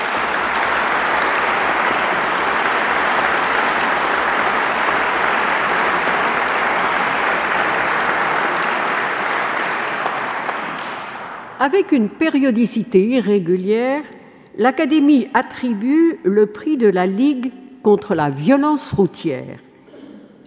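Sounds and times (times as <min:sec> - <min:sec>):
audience applauding award-winning historians: 0:00.0 - 0:11.6
speech: 0:11.6 - 0:19.7.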